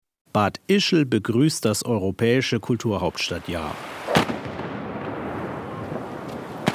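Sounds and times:
speech: 0:00.4 - 0:04.0
Ischler Prangerschützen salute shots on a bridge over the Traun: 0:04.0 - 0:04.7, 0:05.4 - 0:06.7.

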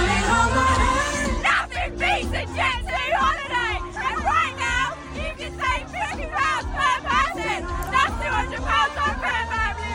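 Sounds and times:
crowd babble at a live concert: 0:00.0 - 0:09.9
concert-goers including young women shouting an advert slogan: 0:01.3 - 0:09.9.

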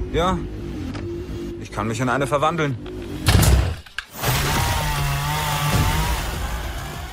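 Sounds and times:
speech: 0:00.1 - 0:00.6, 0:01.6 - 0:03.5
chainsaw sound effect: 0:04.1 - 0:07.1.

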